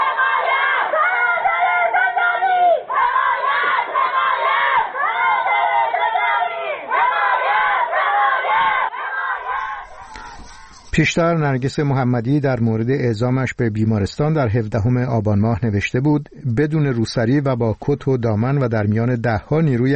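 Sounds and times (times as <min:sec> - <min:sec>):
women prisoners chanting in protest: 0:00.0 - 0:10.9
speech: 0:11.0 - 0:19.9.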